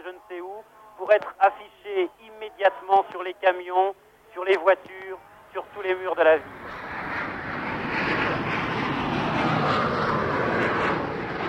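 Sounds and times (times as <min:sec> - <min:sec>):
speech: 0:01.1 - 0:06.6
Boeing 747 jet airliner engine drone in flight: 0:04.8 - 0:11.4.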